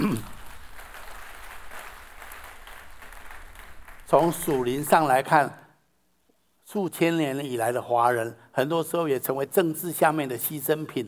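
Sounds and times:
audience applause: 0.0s - 5.2s
speech: 4.1s - 5.6s, 6.7s - 11.0s.

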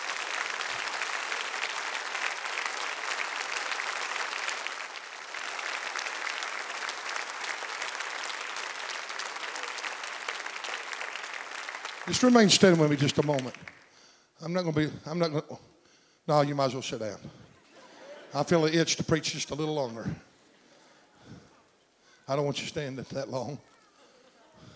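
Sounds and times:
audience applauding: 0.0s - 13.9s
speech: 12.1s - 13.7s, 14.4s - 15.7s, 16.3s - 17.3s, 18.3s - 20.3s, 22.3s - 23.7s
laughter: 17.5s - 18.7s, 24.0s - 24.7s.

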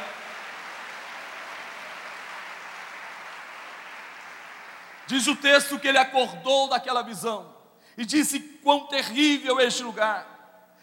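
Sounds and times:
audience applauding: 0.0s - 5.4s
speech: 5.1s - 10.3s.

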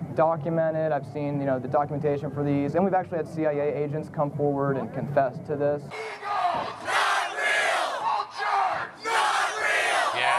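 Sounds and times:
speech: 0.2s - 6.4s
rally crowd chanting and cheering: 5.9s - 10.3s.

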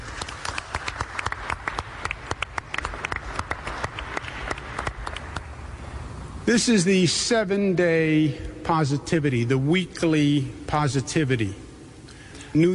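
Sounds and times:
audience applause: 0.0s - 5.5s
speech: 6.5s - 11.6s, 12.5s - 12.7s.

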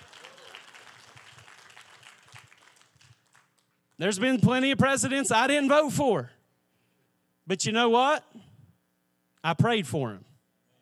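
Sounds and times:
crowd applauding: 0.0s - 4.3s
speech: 4.0s - 6.4s, 7.5s - 8.4s, 9.4s - 10.3s.

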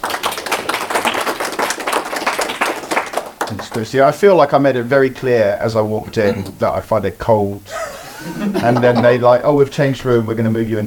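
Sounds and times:
audience applause welcoming a guest speaker: 0.0s - 3.8s
speech: 3.7s - 10.8s
laughter: 7.7s - 9.4s.

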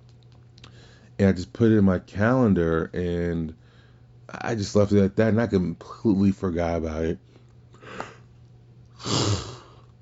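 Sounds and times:
speech: 1.2s - 3.6s, 4.3s - 8.0s
person yawning: 9.0s - 9.8s.

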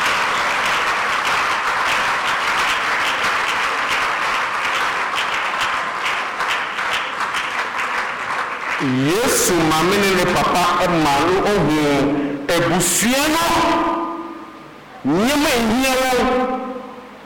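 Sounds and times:
audience clapping: 0.0s - 11.0s
speech: 8.8s - 14.0s, 15.0s - 16.6s.

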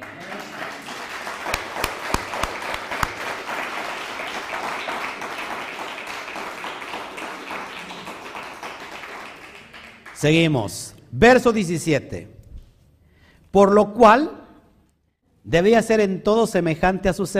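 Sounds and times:
audience applause: 0.0s - 10.2s
speech: 10.2s - 12.4s, 13.5s - 14.4s, 15.4s - 17.3s.

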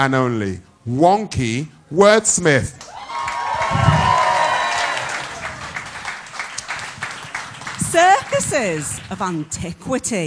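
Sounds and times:
speech: 0.0s - 3.0s, 8.4s - 10.2s
audience applauding and cheering a poet at a live poetry show: 2.8s - 9.2s.

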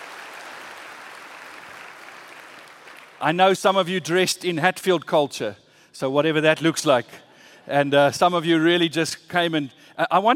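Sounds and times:
audience applause: 0.0s - 3.2s
speech: 3.2s - 10.3s.

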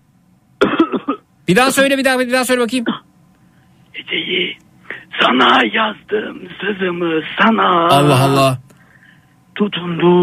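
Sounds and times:
loud rough cough: 0.6s - 1.3s
speech: 1.5s - 3.0s, 4.0s - 8.6s, 9.6s - 10.2s.

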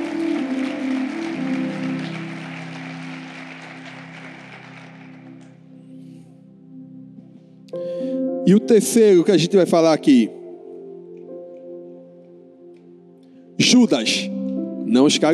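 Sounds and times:
audience applauding: 0.0s - 5.9s
sustained organ-like chords: 0.0s - 15.3s
speech: 7.7s - 7.9s, 8.5s - 10.4s, 13.7s - 15.3s.

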